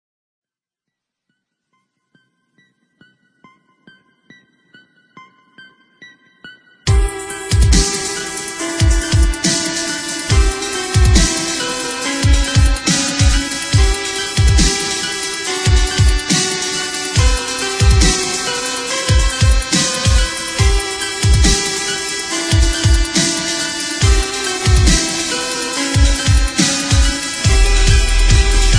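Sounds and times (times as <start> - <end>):
dubstep remix: 6.9 - 28.7.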